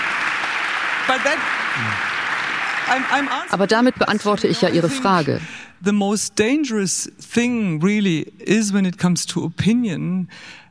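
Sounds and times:
audience applause: 0:00.0 - 0:05.3
speech: 0:01.1 - 0:02.1, 0:02.9 - 0:10.6
low vocal sound: 0:01.8 - 0:02.1.

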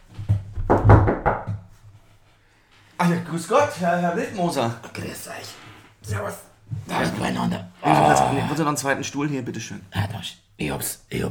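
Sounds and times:
knocking on a door: 0:00.2 - 0:01.7
speech: 0:03.1 - 0:11.3.

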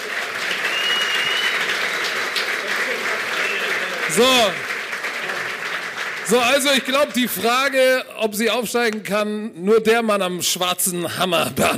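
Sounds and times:
audience applause: 0:00.0 - 0:07.9
speech: 0:04.2 - 0:04.7, 0:06.3 - 0:11.7.

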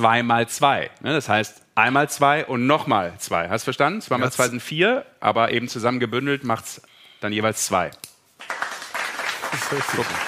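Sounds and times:
speech: 0:00.0 - 0:08.6, 0:09.7 - 0:10.2
audience applause: 0:08.4 - 0:10.2.

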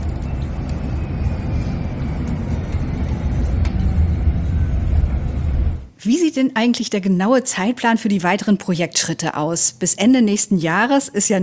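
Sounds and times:
quiet electric city bus driving: 0:00.0 - 0:06.0
faint high whine: 0:00.0 - 0:06.1
speech: 0:06.0 - 0:11.4.

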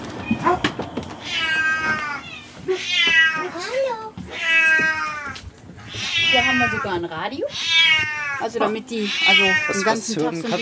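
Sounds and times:
clatter: 0:00.0 - 0:08.2
cats meowing loudly: 0:00.1 - 0:10.5
speech: 0:06.8 - 0:10.5.

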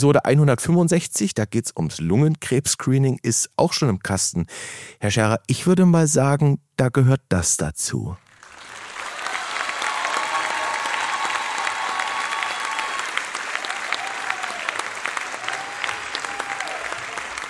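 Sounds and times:
speech: 0:00.0 - 0:08.3
applause: 0:08.2 - 0:17.4.

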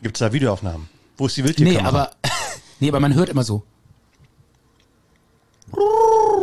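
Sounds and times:
speech: 0:00.0 - 0:03.7, 0:05.7 - 0:06.4
person imitating a tawny owl call: 0:05.7 - 0:06.4.

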